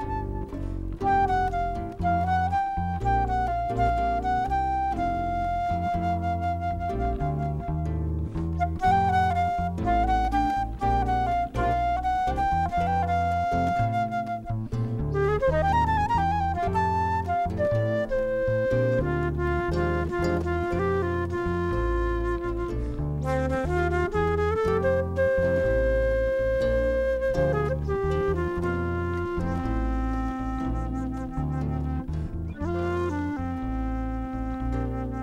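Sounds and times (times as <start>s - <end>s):
jazz harp trio playing: 0.0s - 35.2s.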